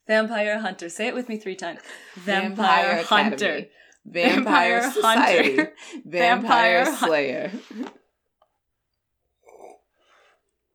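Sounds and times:
speech: 0.1 - 8.0
laughter: 2.1 - 3.6, 4.2 - 7.9
loud sip of wine: 7.5 - 8.0.

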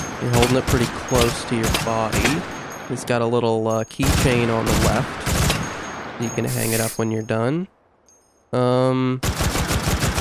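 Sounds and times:
gun with a small orange part firing rapidly into the woods: 0.1 - 2.5, 4.0 - 5.8, 9.2 - 10.2
speech: 0.2 - 5.3, 6.2 - 7.8, 8.5 - 9.4.

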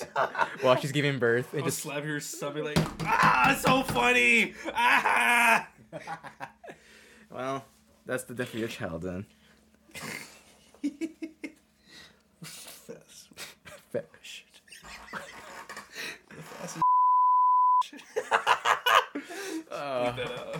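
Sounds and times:
laughter: 0.0 - 1.1, 4.5 - 6.8, 14.7 - 16.8, 17.8 - 20.5
speech: 0.2 - 6.5, 7.3 - 10.2, 13.9 - 14.4, 19.7 - 20.5
censorship bleep over speech: 16.8 - 17.8.

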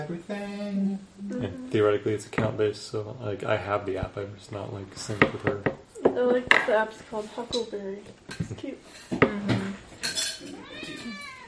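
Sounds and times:
speech: 0.0 - 9.5
clinking kitchen clatters: 5.0 - 7.7, 8.3 - 11.2
cat meowing: 10.4 - 11.4.

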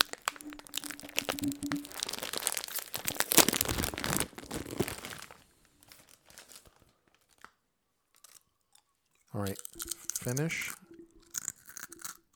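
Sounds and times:
bag of Salt and Vinegar chips crinkling: 0.0 - 8.5, 9.4 - 12.2
speech: 9.4 - 10.8.

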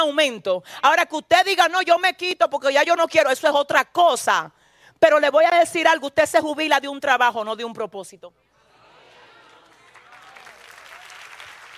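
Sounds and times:
speech: 0.0 - 8.5
audience applause: 9.1 - 11.7.

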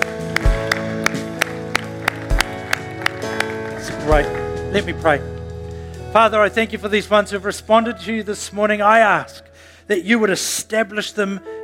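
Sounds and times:
audience clapping: 0.0 - 4.6
speech: 4.1 - 5.4, 6.1 - 11.6.

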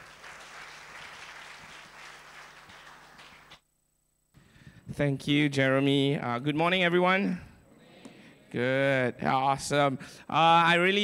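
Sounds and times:
audience applause at a church worship service: 0.0 - 3.6
speech: 5.0 - 7.5, 8.5 - 11.0.

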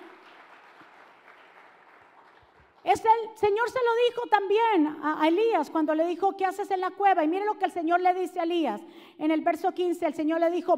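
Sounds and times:
loud applause: 0.0 - 2.8
speech: 2.8 - 10.7.

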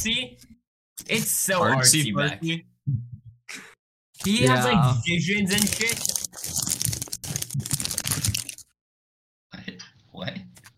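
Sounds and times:
speech: 0.0 - 6.8
person chewing crunchy food: 5.6 - 8.7.

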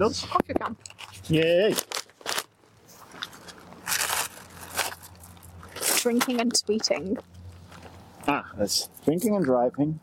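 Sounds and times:
speech: 0.0 - 1.9, 6.0 - 7.4, 8.6 - 10.0
someone crunching crisps: 0.8 - 6.3.

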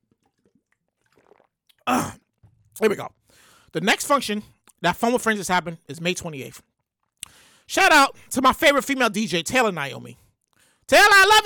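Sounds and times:
person gulping and sipping water: 0.0 - 3.6, 6.7 - 7.4
speech: 2.8 - 6.7, 7.7 - 10.2, 10.9 - 11.4.

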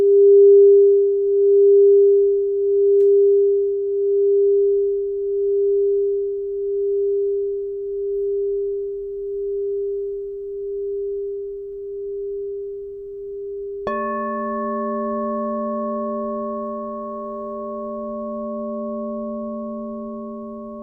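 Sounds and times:
crystal singing bowl tone: 0.0 - 20.8
second singing bowl struck: 13.8 - 20.8.

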